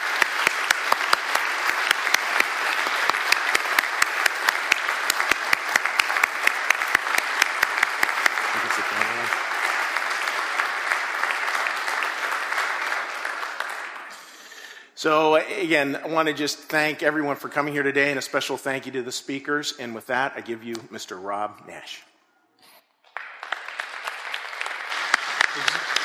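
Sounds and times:
warm round of applause: 0:00.0 - 0:14.8, 0:23.0 - 0:26.0
speech: 0:15.0 - 0:22.1.

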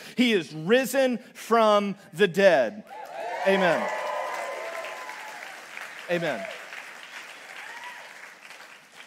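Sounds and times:
speech: 0:00.2 - 0:04.0, 0:06.1 - 0:06.6
church congregation cheering and clapping: 0:02.8 - 0:09.0.

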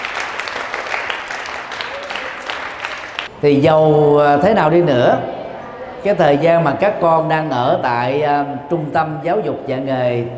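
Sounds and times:
loud round of applause: 0:00.0 - 0:03.3
speech: 0:03.4 - 0:05.3, 0:06.0 - 0:10.3.

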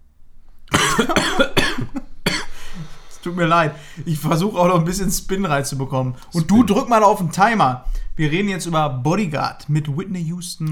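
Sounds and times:
coughing: 0:00.7 - 0:03.0, 0:06.3 - 0:07.0
speech: 0:01.0 - 0:01.6, 0:03.2 - 0:10.7.

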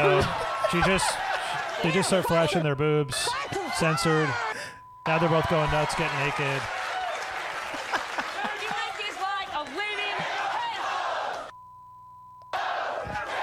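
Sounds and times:
scattered applause: 0:00.0 - 0:02.3, 0:05.1 - 0:11.5
speech: 0:00.0 - 0:06.8
laughter: 0:00.0 - 0:11.0
crowd cheering and whooping: 0:00.0 - 0:11.5, 0:12.5 - 0:13.4.

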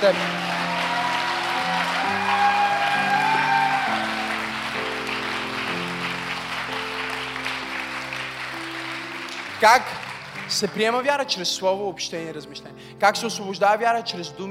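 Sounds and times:
speech: 0:00.0 - 0:00.4, 0:09.6 - 0:14.4
audience applauding: 0:00.0 - 0:11.3.

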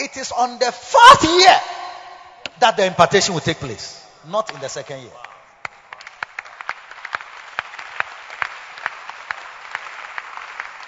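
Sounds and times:
speech: 0:00.1 - 0:02.0, 0:02.6 - 0:05.2
scattered audience clapping at a conference: 0:04.4 - 0:10.8.

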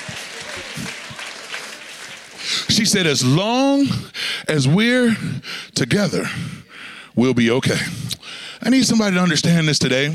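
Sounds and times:
audience clapping: 0:00.0 - 0:03.4
speech: 0:02.8 - 0:06.6, 0:07.2 - 0:10.1.

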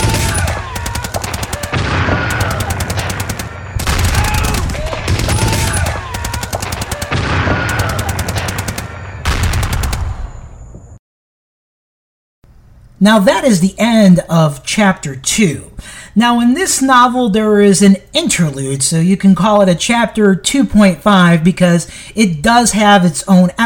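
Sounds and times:
alien weapons fire in a battle: 0:00.0 - 0:10.6
speech: 0:13.0 - 0:23.6.

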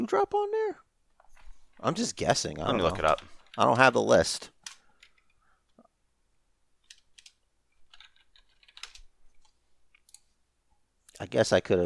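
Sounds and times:
speech: 0:00.0 - 0:00.8, 0:01.8 - 0:04.6, 0:11.2 - 0:11.8
typing on a computer keyboard: 0:02.6 - 0:04.0, 0:06.8 - 0:10.2.

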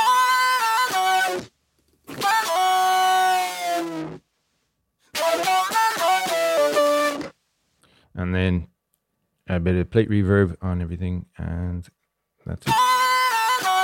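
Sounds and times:
effected electric guitar blended with a clean boosted tone: 0:00.0 - 0:04.2, 0:05.1 - 0:07.3, 0:12.5 - 0:13.8
speech: 0:09.5 - 0:13.0.

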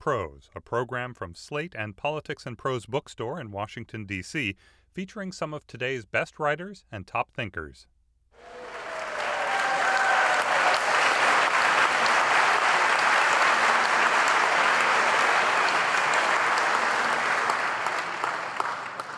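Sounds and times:
speech: 0:00.0 - 0:08.6
audience applause as speaker walks in: 0:08.4 - 0:19.1.

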